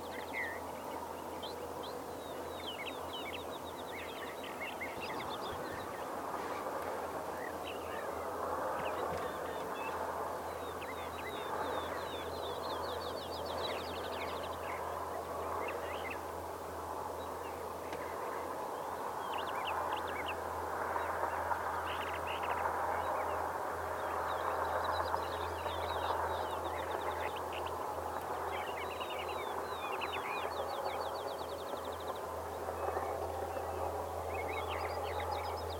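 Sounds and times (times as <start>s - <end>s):
dawn train: 0.0s - 35.7s.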